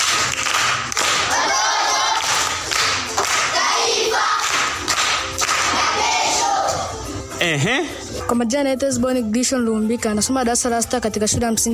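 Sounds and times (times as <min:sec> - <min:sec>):
group clapping for a schoolchild at a primary school: 0:00.0 - 0:06.8
speech: 0:07.4 - 0:11.7.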